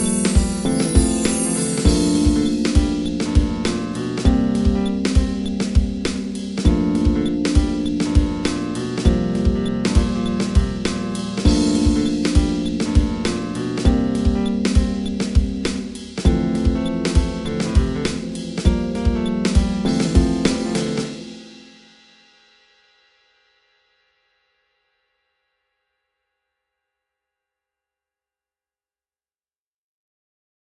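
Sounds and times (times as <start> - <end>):
fretless bass groove: 0.0 - 21.5.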